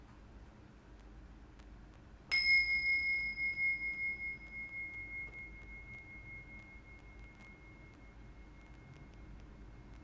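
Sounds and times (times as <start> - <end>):
single bell strike with clear high tone: 2.3 - 9.4.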